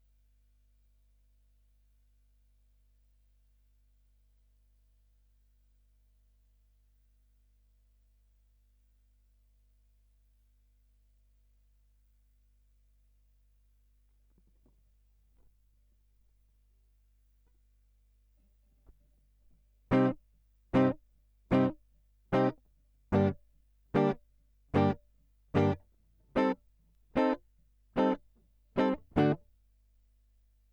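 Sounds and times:
guitar line: 0:19.9 - 0:20.2, 0:20.8 - 0:21.8, 0:22.4 - 0:23.4, 0:24.0 - 0:24.2, 0:24.8 - 0:25.0, 0:25.6 - 0:25.8, 0:26.4 - 0:26.6, 0:27.2 - 0:27.4, 0:28.0 - 0:28.2, 0:28.8 - 0:29.4.

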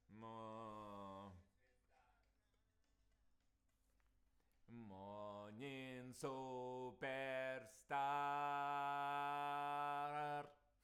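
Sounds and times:
vocals: 0:00.0 - 0:02.3, 0:04.7 - 0:10.8.

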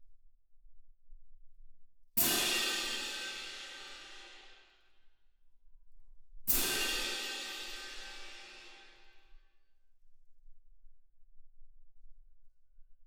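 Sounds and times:
percussion: 0:02.2 - 0:04.9, 0:06.5 - 0:09.3.

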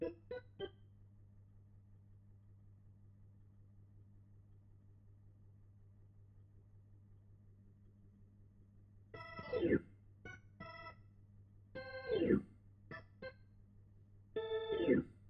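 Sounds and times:
Hammond organ: 0:09.2 - 0:10.9, 0:11.8 - 0:13.4, 0:14.4 - 0:15.1.

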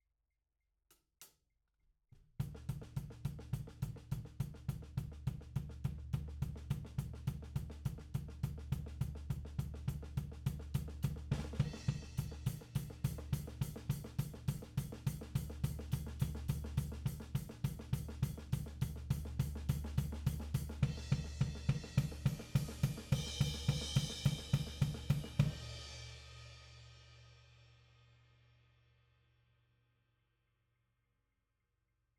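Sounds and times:
tom drum: 0:02.4 - 0:26.0.

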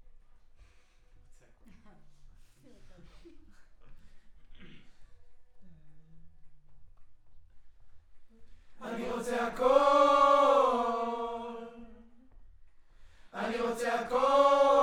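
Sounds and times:
choir singing: 0:08.8 - 0:12.2, 0:13.3 - 0:14.8.

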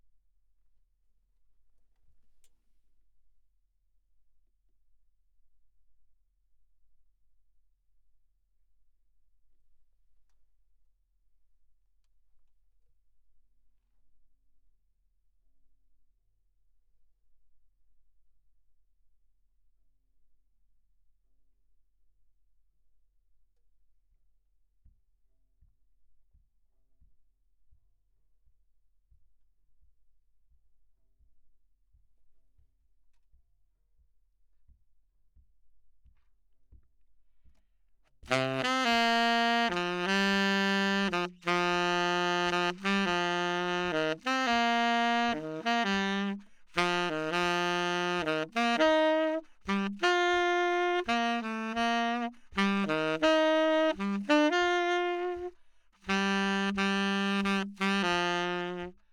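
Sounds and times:
saxophone: 0:38.3 - 0:59.0.

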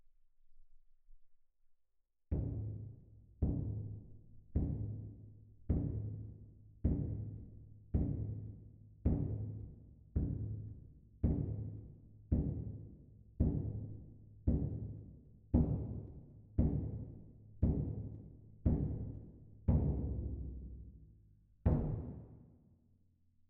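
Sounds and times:
percussion: 0:02.3 - 0:22.6.

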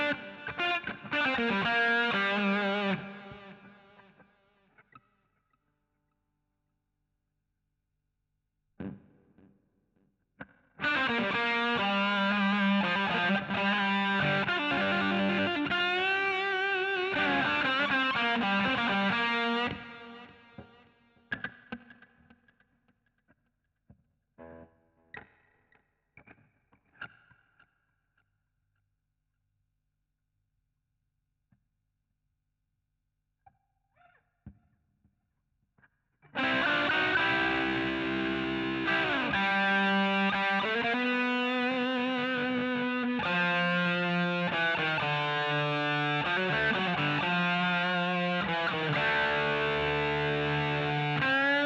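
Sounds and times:
guitar solo: 0:00.0 - 0:04.2, 0:10.8 - 0:22.0, 0:36.3 - 0:51.6.

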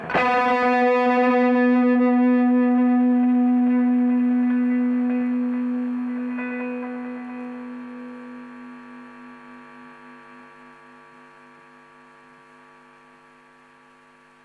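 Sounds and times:
electric guitar: 0:00.0 - 0:10.8.

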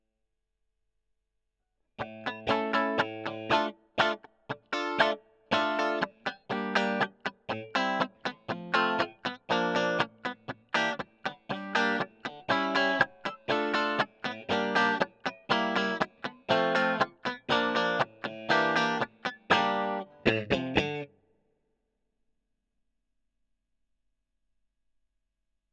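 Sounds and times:
electric guitar: 0:02.0 - 0:21.1.

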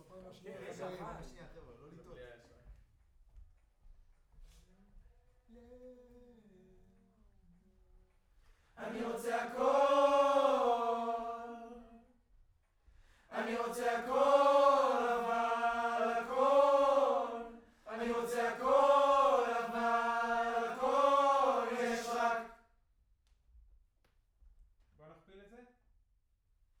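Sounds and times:
distant choir: 0:08.8 - 0:12.0, 0:13.2 - 0:22.6.

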